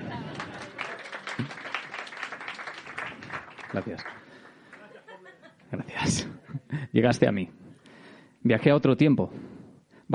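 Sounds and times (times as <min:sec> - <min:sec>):
laughter: 0:00.0 - 0:01.8, 0:04.6 - 0:06.9
audience applause: 0:00.0 - 0:05.1
speech: 0:03.7 - 0:04.2, 0:06.0 - 0:07.6, 0:08.4 - 0:09.4.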